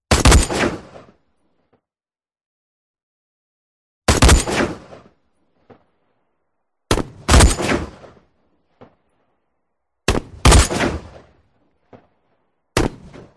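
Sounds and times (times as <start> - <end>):
designed rifle shots: 0.1 - 1.2, 4.1 - 5.2, 6.9 - 8.4, 10.1 - 11.5, 12.8 - 13.3.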